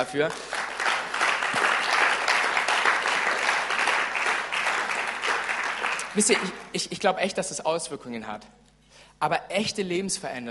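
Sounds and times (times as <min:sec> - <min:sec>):
speech: 0:00.0 - 0:00.6, 0:06.2 - 0:08.6, 0:09.2 - 0:10.4
audience applause: 0:00.0 - 0:06.6.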